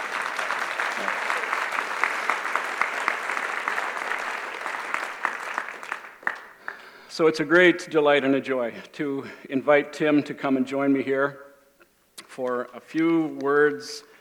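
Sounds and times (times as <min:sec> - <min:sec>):
audience applause: 0:00.0 - 0:06.9
speech: 0:07.2 - 0:11.4, 0:12.4 - 0:14.1.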